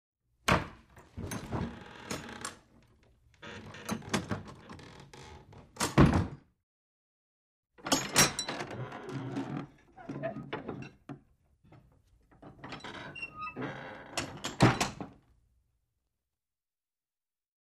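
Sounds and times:
wooden door opening and closing with creak: 0.5 - 6.4, 7.8 - 15.2.

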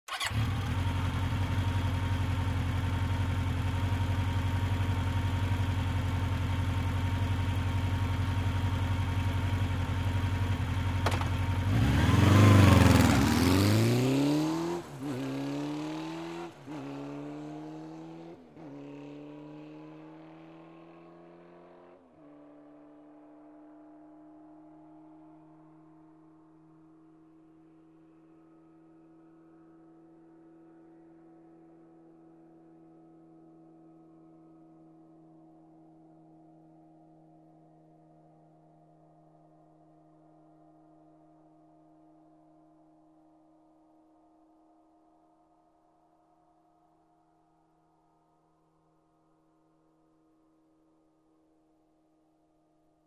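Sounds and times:
motorcycle starting, idling and driving off quickly: 0.0 - 26.0.

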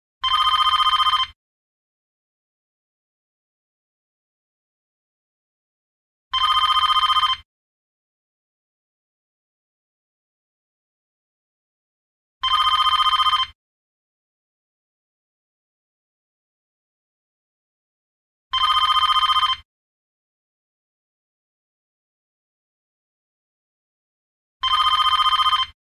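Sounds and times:
phone ringing: 0.2 - 1.4, 6.3 - 7.5, 12.4 - 13.6, 18.5 - 19.7, 24.6 - 25.8.

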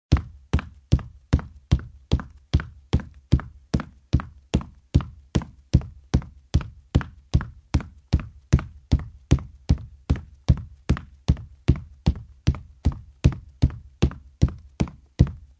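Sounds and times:
running in shoes on a wooden floor: 0.1 - 15.5.

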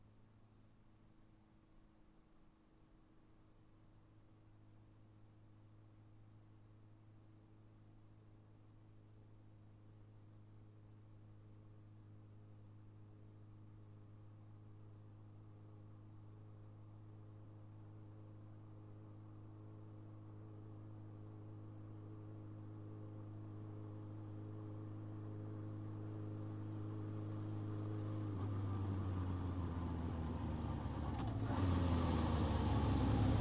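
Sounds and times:
motorcycle approaching and turning off: 25.3 - 33.4.

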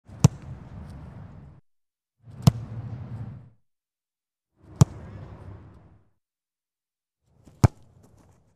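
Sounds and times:
football ball kick: 0.2 - 0.6, 4.7 - 5.1, 7.4 - 8.3.

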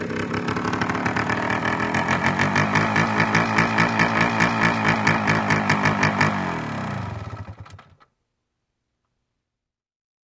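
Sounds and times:
motorcycle approaching: 0.0 - 8.0.

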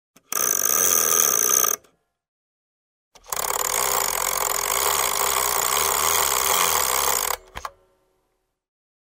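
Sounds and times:
wall clock mechanism winding: 0.2 - 1.8, 3.2 - 7.7.

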